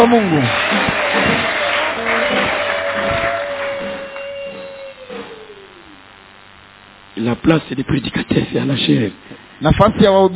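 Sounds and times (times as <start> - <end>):
speech: 0.0 - 0.7, 7.3 - 10.3
audience applauding: 0.0 - 5.9
held tone: 2.0 - 7.2.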